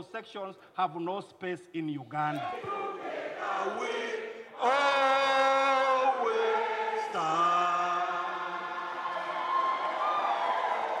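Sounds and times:
speech: 0.0s - 6.4s
crowd cheering in Uganda's parliament as a bill passes: 2.4s - 4.0s, 4.6s - 10.9s.

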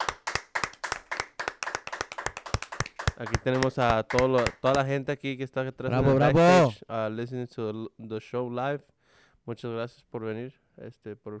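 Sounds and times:
hand clapping for newlyweds at a wedding: 0.0s - 4.9s
speech: 3.2s - 11.3s.

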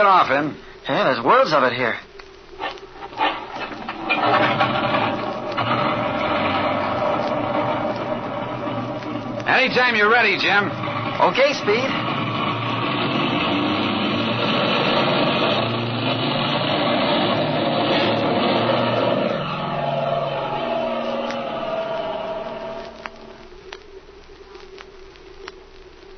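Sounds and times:
speech: 0.0s - 2.1s, 9.5s - 12.0s
faint clicks and crackles: 0.0s - 26.1s
propeller airplane engine: 4.2s - 19.8s.

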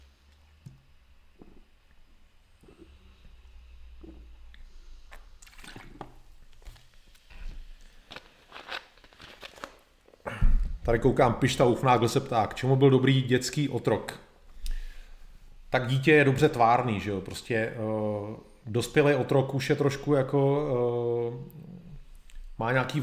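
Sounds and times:
person drinking: 1.3s - 8.7s
speech: 10.9s - 14.3s, 15.7s - 21.6s, 22.6s - 23.0s.

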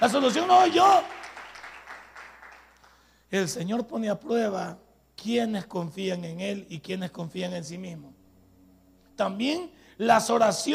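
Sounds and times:
speech: 0.0s - 1.2s, 3.3s - 8.2s, 9.2s - 10.7s
audience applause: 0.0s - 3.0s.

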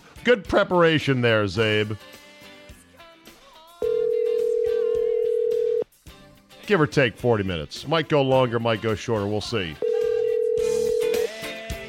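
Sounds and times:
faint music: 0.0s - 11.8s
speech: 0.2s - 2.2s, 6.7s - 9.8s
outgoing phone call ringing: 3.8s - 5.8s, 9.8s - 11.4s.

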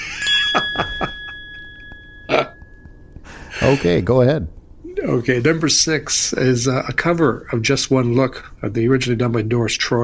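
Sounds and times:
bell rung on a radio show: 0.0s - 3.9s
speech: 3.7s - 10.0s.

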